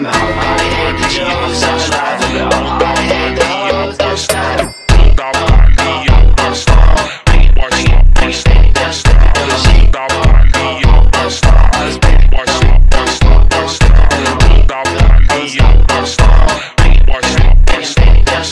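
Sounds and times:
super slowed funk music: 0.1s - 18.4s.

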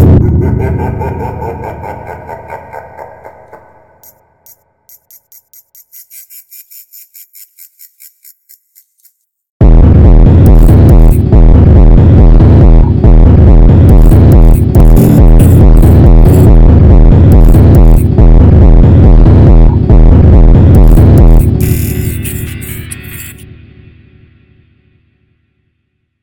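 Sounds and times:
funk superbass: 0.0s - 1.0s, 9.6s - 23.4s
laughter: 0.0s - 4.6s.

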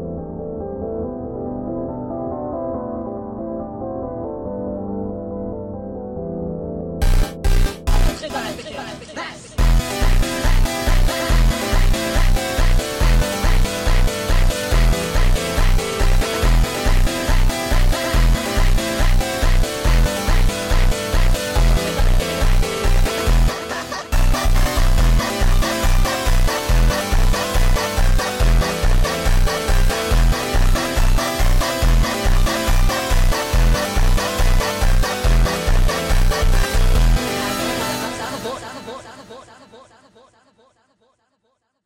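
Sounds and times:
sped up funk music: 7.0s - 8.8s, 9.6s - 38.1s.

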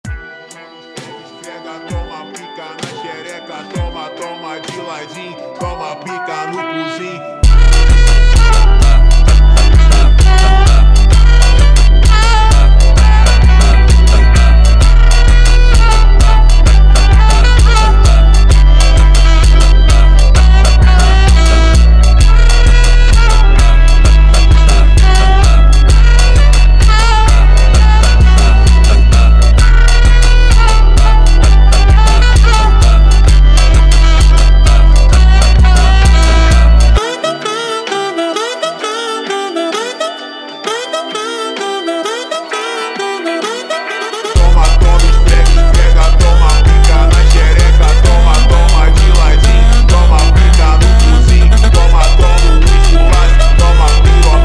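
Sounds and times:
jazz funk music: 0.0s - 54.4s.

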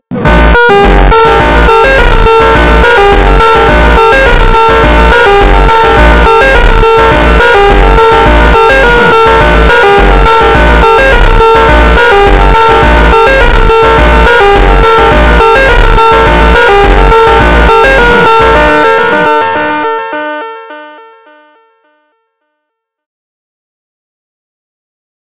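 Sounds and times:
slowed funk with reverb: 0.1s - 19.9s.

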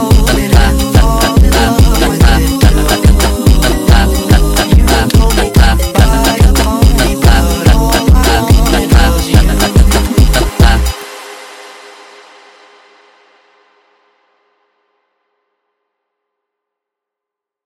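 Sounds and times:
sped up funk music: 0.0s - 11.0s.

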